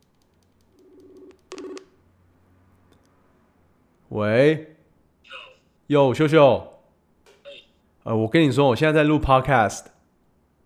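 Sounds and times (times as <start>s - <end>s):
electronic phone tones as a call is dialed: 0.7s - 1.8s
speech: 4.2s - 4.7s, 5.9s - 6.7s, 8.0s - 9.9s.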